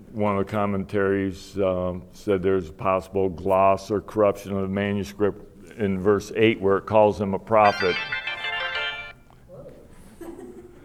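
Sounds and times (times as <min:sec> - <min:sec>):
speech: 0:00.1 - 0:08.2
phone ringtone: 0:07.6 - 0:09.2.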